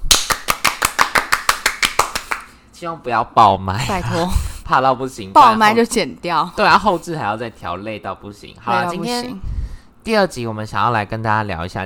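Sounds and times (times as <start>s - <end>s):
hands clapping: 0.0s - 2.5s
speech: 2.8s - 11.8s.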